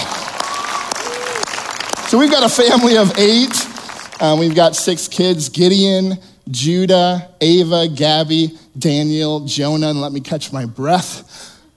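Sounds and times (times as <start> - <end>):
audience applause: 0.0 - 4.9
speech: 2.1 - 11.5.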